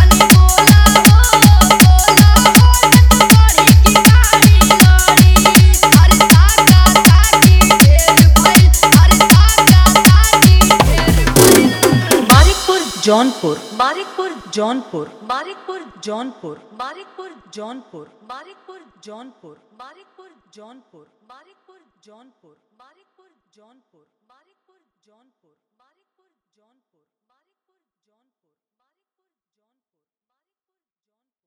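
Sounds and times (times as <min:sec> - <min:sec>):
Bhojpuri dholak bass dance mix: 0:00.0 - 0:14.2.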